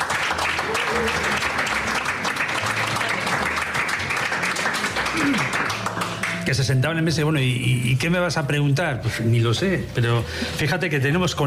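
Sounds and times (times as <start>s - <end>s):
audience applause: 0.0s - 6.6s
speech: 6.5s - 11.4s.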